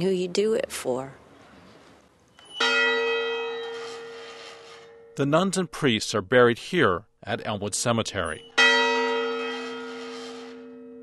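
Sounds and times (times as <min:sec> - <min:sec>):
speech: 0:00.0 - 0:01.2, 0:05.2 - 0:08.5
cemetery bell ringing at Elmwood Cemetery: 0:02.4 - 0:05.3, 0:08.1 - 0:11.0.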